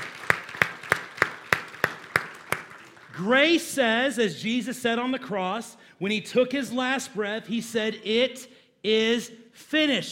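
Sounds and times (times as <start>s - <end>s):
audience applause: 0.0s - 3.2s
speech: 3.2s - 10.0s.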